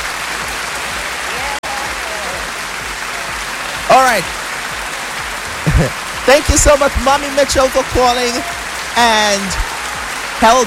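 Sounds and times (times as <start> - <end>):
audience applause: 0.0 - 10.6
speech: 4.2 - 4.4, 5.8 - 9.7, 10.4 - 10.6.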